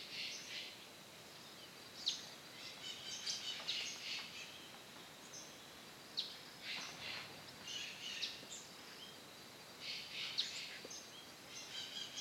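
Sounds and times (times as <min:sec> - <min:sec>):
wind on a cloudy winter morning in the Atlantic Forest: 0:00.0 - 0:12.1.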